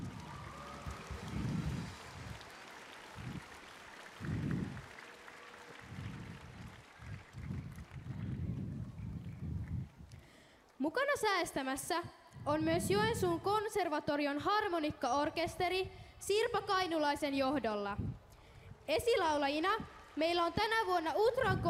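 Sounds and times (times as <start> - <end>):
audience applause: 0.0 - 9.4
speech: 10.8 - 18.1, 18.9 - 21.6.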